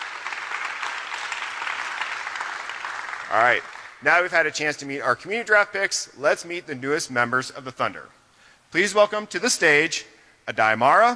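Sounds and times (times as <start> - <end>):
audience applause at a press conference: 0.0 - 4.0
speech: 3.3 - 11.1.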